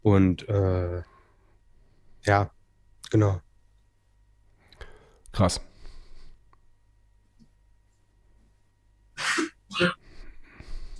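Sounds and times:
speech: 0.0s - 1.1s, 2.2s - 3.5s, 5.4s - 5.7s, 9.7s - 10.0s
cough: 9.2s - 10.0s.

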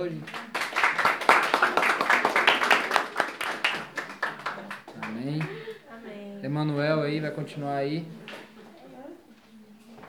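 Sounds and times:
speech: 0.0s - 0.5s, 6.5s - 8.2s
audience clapping: 0.0s - 5.8s.

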